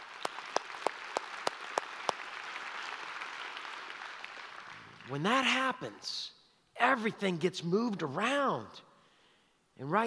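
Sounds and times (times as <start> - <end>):
audience applause: 0.0 - 5.2
speech: 5.1 - 8.9, 9.8 - 10.0.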